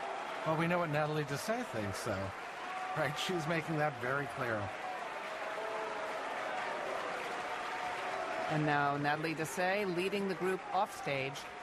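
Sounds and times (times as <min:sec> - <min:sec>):
loud audience applause: 0:00.0 - 0:11.6
speech: 0:00.4 - 0:04.8, 0:08.5 - 0:11.6.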